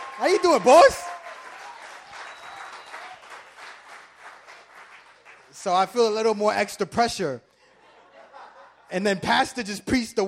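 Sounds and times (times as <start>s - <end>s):
audience round of applause: 0.0s - 5.6s
speech: 0.2s - 1.1s, 5.6s - 7.5s, 8.9s - 10.2s
laughter: 7.7s - 9.1s.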